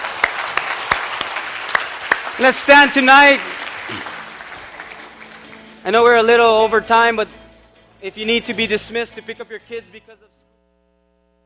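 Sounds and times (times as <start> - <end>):
audience applause: 0.0 - 5.8
speech: 2.4 - 4.1, 5.8 - 7.4, 8.0 - 10.5.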